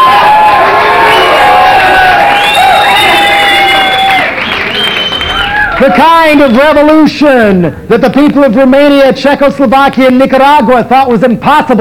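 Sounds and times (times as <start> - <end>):
shouts and whistle-like cries: 0.0 - 6.9
large crowd cheering and applauding: 0.0 - 7.1
speech: 5.8 - 11.7.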